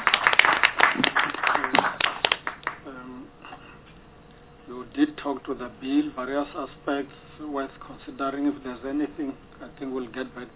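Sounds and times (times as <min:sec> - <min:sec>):
audience applause: 0:00.0 - 0:02.8
speech: 0:05.2 - 0:10.5.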